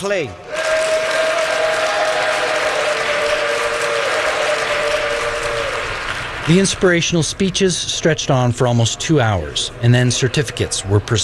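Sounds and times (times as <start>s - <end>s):
speech: 0.0s - 0.6s, 6.5s - 11.2s
audience cheering and applauding at a prison ceremony: 0.4s - 7.1s.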